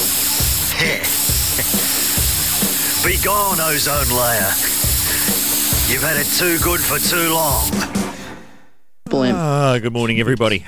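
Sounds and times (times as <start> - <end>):
aerosol can spraying: 0.0 - 7.8
speech: 0.8 - 1.9, 3.0 - 4.8, 5.9 - 7.9, 9.1 - 10.6.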